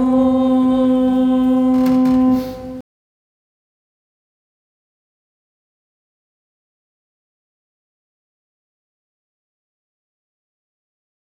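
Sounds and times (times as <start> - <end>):
contraltos singing: 0.0 - 2.8.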